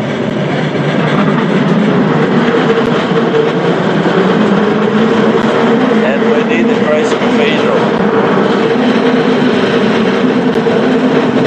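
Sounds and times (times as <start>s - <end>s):
San Francisco cable car grinding uphill: 0.0s - 11.4s.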